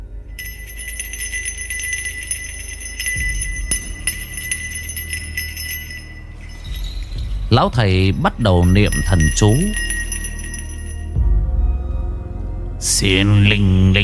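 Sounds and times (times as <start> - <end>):
small bell hanging on a bedpost jingling: 0.0 - 11.2
speech: 7.5 - 9.9, 13.0 - 14.0.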